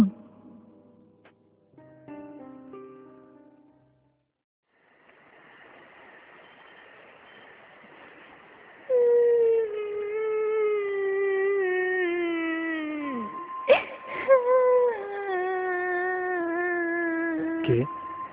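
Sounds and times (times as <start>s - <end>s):
eerie wailing cry at night: 8.9s - 18.2s.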